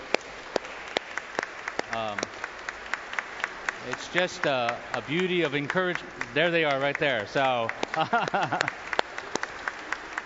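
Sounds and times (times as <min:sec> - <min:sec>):
audience applause: 0:00.0 - 0:10.2
speech: 0:02.0 - 0:02.4, 0:04.0 - 0:08.9
laughter: 0:07.8 - 0:08.8.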